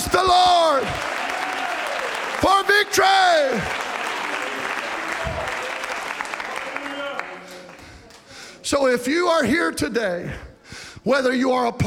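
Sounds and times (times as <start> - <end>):
audience clapping: 0.0 - 8.6
speech: 0.1 - 1.1, 2.4 - 3.9, 8.7 - 10.4, 11.0 - 11.8.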